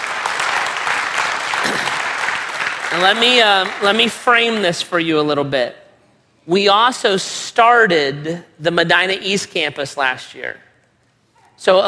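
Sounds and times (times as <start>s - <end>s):
audience clapping: 0.0s - 4.6s
speech: 2.9s - 5.8s, 6.4s - 10.6s, 11.6s - 11.8s.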